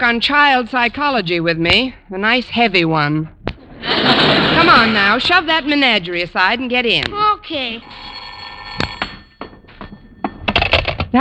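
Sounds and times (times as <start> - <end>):
speech: 0.0 - 8.1
old-style telephone bell ringing: 7.6 - 11.0.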